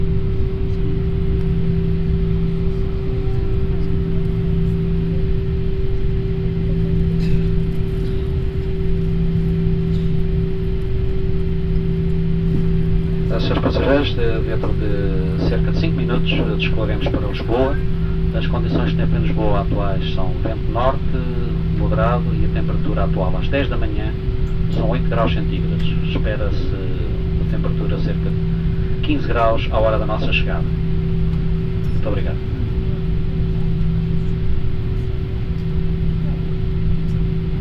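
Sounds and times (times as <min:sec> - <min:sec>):
flight in Brazil: 0:00.0 - 0:37.6.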